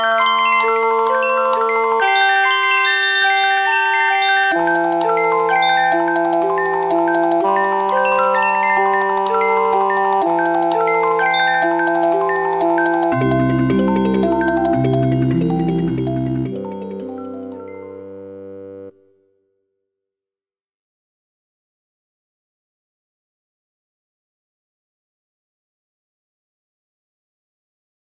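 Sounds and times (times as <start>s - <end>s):
slendro tuned melody with detuned octaves: 0.0s - 19.0s.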